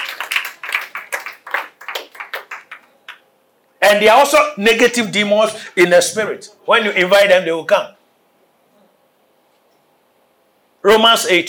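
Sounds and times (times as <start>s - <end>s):
audience clapping hands: 0.0s - 3.2s
speech: 3.9s - 8.0s, 10.9s - 11.4s.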